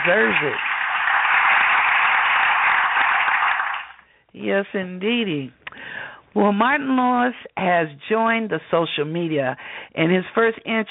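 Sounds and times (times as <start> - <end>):
speech: 0.0 - 0.7, 4.4 - 5.6, 6.3 - 10.8
applause: 0.0 - 4.1.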